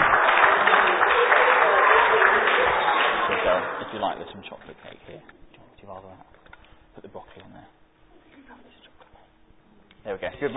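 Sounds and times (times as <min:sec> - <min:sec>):
audience applause: 0:00.0 - 0:04.3
speech: 0:04.0 - 0:06.4, 0:07.0 - 0:07.8, 0:10.0 - 0:10.5.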